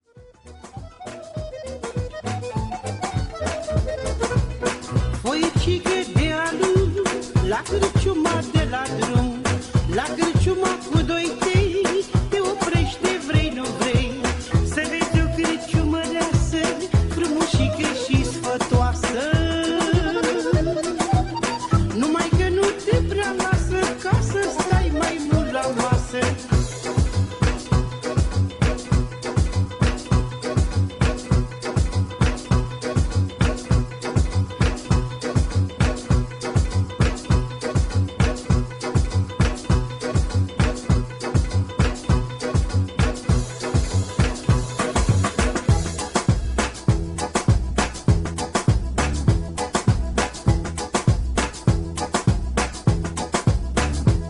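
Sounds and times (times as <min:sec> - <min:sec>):
funky Balkan music: 0:00.0 - 0:54.2.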